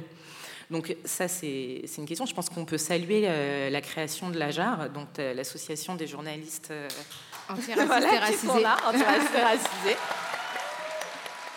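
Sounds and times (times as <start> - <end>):
speech: 0.7 - 10.2
long applause from audience: 7.4 - 11.5
laughter: 7.6 - 10.1.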